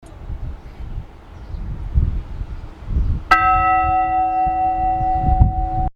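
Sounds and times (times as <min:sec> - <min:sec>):
bell ringing: 0:03.3 - 0:05.9.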